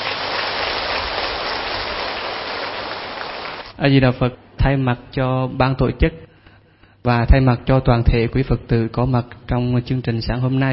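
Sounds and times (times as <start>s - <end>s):
crowd applause: 0.0s - 3.7s
speech: 3.8s - 6.3s, 7.0s - 10.7s.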